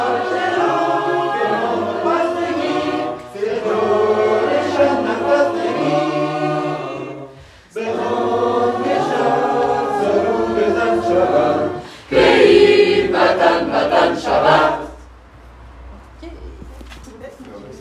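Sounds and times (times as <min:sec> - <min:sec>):
voices singing tutti: 0:00.0 - 0:15.2.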